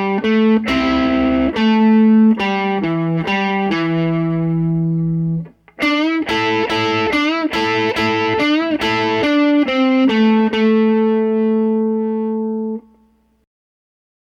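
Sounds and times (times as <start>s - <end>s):
slow solo: 0.0s - 13.4s.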